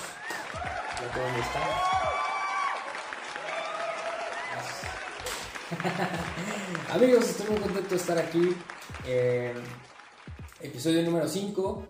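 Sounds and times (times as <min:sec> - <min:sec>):
excited cheering voices: 0:00.0 - 0:08.7
applause: 0:00.0 - 0:11.8
speech: 0:01.0 - 0:02.1, 0:05.7 - 0:09.9, 0:10.6 - 0:11.8
laughter: 0:05.3 - 0:08.0.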